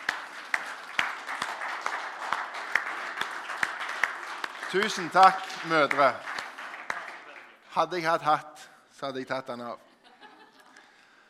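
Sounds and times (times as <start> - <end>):
audience applauding: 0.0 - 7.9
speech: 4.7 - 6.3, 7.7 - 9.9
laughter: 9.8 - 10.8.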